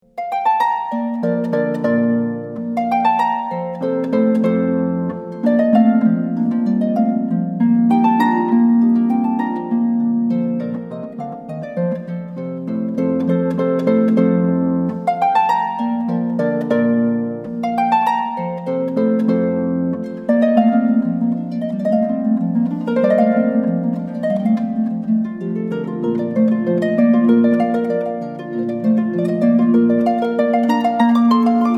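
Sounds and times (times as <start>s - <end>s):
harp concerto: 0.0s - 31.7s.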